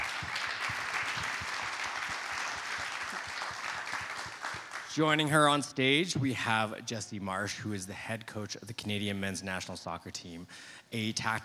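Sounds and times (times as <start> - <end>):
audience applause: 0.0 - 5.2
speech: 5.0 - 11.4.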